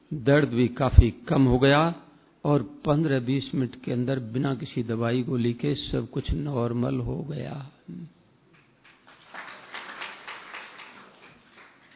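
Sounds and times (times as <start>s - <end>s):
speech: 0.1s - 8.2s
audience clapping faintly: 8.5s - 11.9s.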